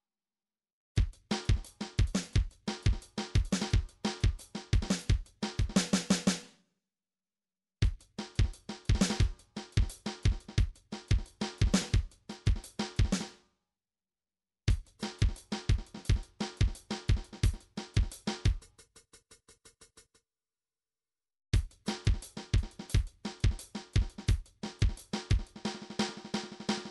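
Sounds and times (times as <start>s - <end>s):
MIDI drum pattern: 1.0s - 6.4s, 7.8s - 13.3s, 14.7s - 20.1s, 21.6s - 26.8s.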